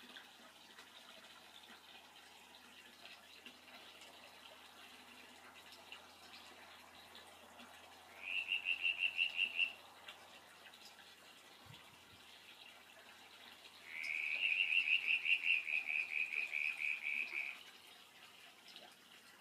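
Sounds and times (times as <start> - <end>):
frog calling: 8.1 - 9.8, 13.8 - 17.6.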